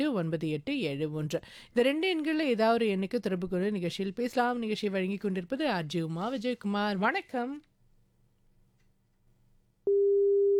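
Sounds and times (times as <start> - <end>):
speech: 0.0 - 7.7
telephone beep tone: 9.9 - 10.5.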